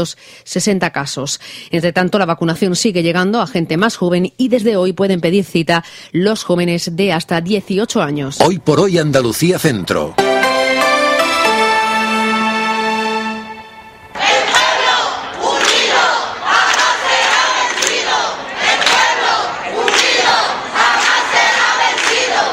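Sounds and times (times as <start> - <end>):
speech: 0.0 - 10.4
sustained musical tones: 10.1 - 14.2
crowd of social housing tenants chanting and shouting at a protest in Écija, Spain: 14.0 - 22.5.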